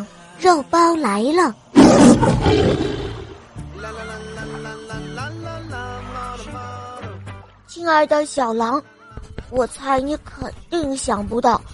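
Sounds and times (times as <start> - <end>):
speech: 0.4 - 3.0, 7.8 - 8.9, 9.5 - 11.7
deep rumbling lion roar: 1.8 - 3.4.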